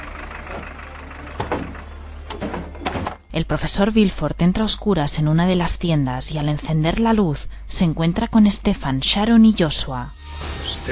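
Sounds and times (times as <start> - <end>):
vehicle engine humming on a dirt road: 0.0 - 10.9
clunks of people getting out of a vehicle: 0.4 - 3.3
speech: 3.4 - 10.9.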